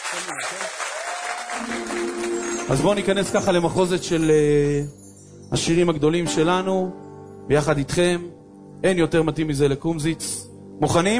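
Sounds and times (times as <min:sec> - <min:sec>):
audience applause for musicians at a singalong gathering: 0:00.0 - 0:03.4
speech: 0:00.1 - 0:11.1.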